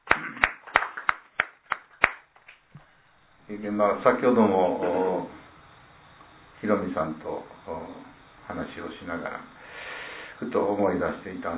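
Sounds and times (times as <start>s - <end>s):
applause: 0.0s - 2.6s
speech: 3.5s - 5.3s, 6.6s - 9.6s, 10.4s - 11.5s.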